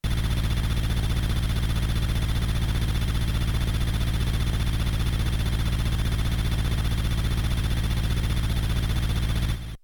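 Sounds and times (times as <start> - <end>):
helicopter: 0.0 - 9.8.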